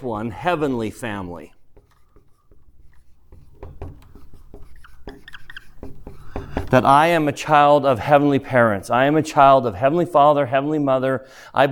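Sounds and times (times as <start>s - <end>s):
speech: 0.0s - 1.6s, 6.7s - 11.6s
handwriting strokes: 0.6s - 6.9s.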